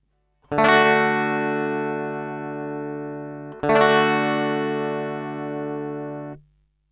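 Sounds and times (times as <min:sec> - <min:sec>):
guitar strumming an open low-position D chord: 0:00.5 - 0:06.4.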